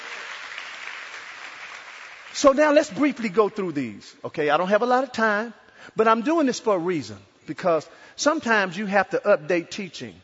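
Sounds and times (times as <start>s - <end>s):
crowd clapping: 0.0s - 3.4s
speech: 2.4s - 10.2s.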